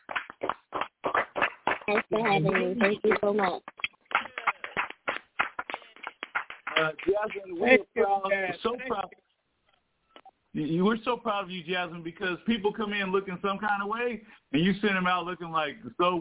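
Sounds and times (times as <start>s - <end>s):
audience clapping: 0.0s - 7.7s
speech: 1.9s - 3.7s, 6.8s - 9.2s, 10.6s - 16.1s.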